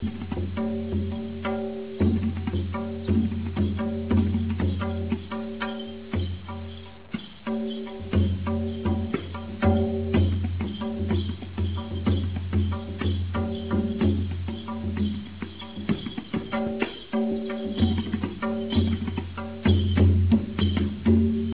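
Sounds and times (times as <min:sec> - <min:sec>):
drum kit: 0:00.0 - 0:21.5.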